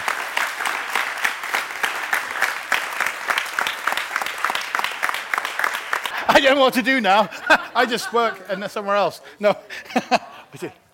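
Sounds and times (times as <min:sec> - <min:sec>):
audience applause: 0:00.0 - 0:08.4
laughter: 0:06.1 - 0:10.9
speech: 0:06.4 - 0:10.8.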